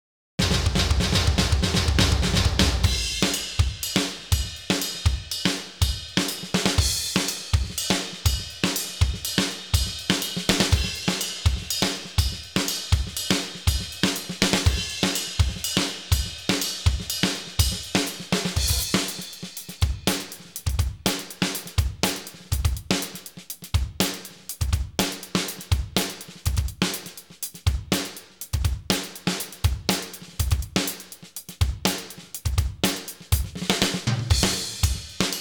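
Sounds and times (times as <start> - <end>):
trashy drums: 0.4 - 35.3.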